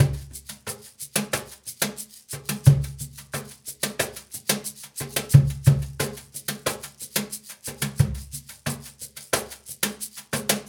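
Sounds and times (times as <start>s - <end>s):
Cajun percussion and drums: 0.0s - 10.6s.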